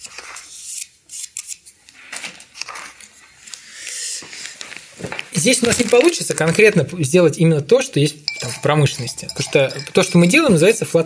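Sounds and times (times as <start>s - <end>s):
speech: 5.4s - 11.0s
spoon stirring chemical reagents into water: 8.2s - 10.8s.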